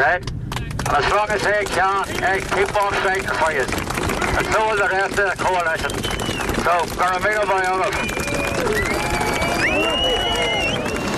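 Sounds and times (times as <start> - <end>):
speech: 0.0 - 9.1
crowd applauding and cheering at rally: 0.5 - 11.1
high whistles: 5.8 - 6.6, 7.9 - 11.0.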